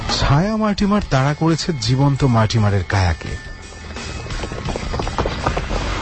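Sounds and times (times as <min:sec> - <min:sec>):
speech: 0:00.2 - 0:03.5
running footsteps along a road: 0:03.2 - 0:06.0.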